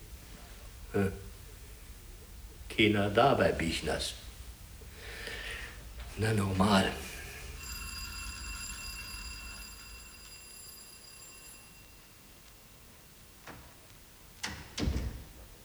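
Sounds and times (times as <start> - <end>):
speech: 0.9 - 1.2, 2.8 - 4.2, 6.2 - 7.0
doorbell ringing: 6.2 - 13.1.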